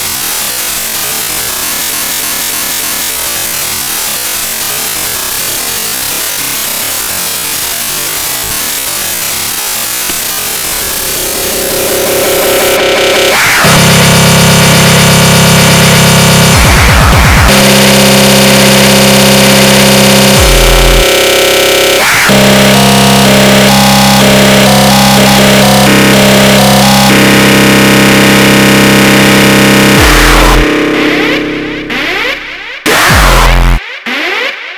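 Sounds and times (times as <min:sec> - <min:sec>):
extratone music: 0:10.2 - 0:34.7.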